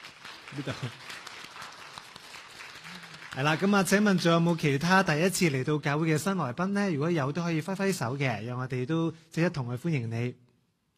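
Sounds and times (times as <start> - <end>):
audience applauding new visitors: 0.0 - 5.5
speech: 0.5 - 1.2, 3.4 - 10.4.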